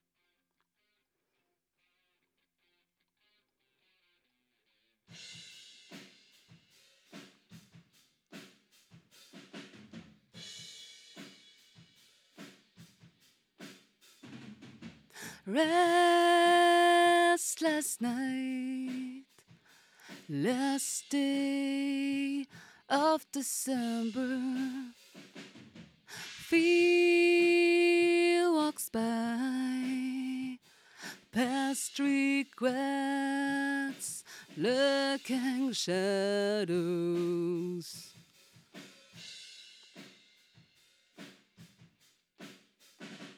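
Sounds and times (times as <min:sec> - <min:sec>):
vocals: 0:15.1 - 0:25.2, 0:26.1 - 0:38.3.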